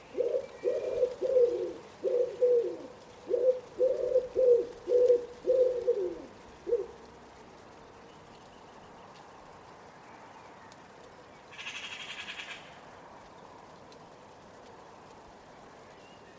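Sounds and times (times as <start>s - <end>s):
Common Wood Pigeon cooing: 0.0s - 7.1s.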